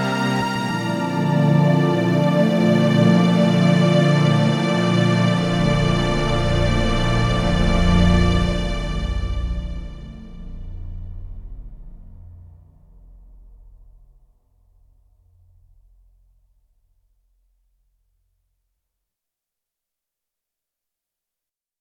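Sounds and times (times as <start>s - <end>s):
Roland D-70 synthesizer: 0.0s - 12.3s.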